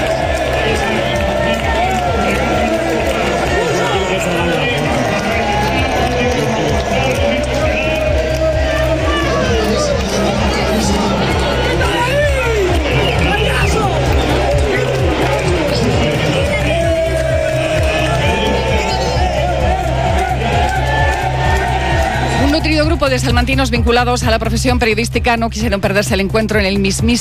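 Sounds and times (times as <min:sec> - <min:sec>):
stadium crowd cheering a goal: 0:00.0 - 0:24.2
speech: 0:23.1 - 0:27.1.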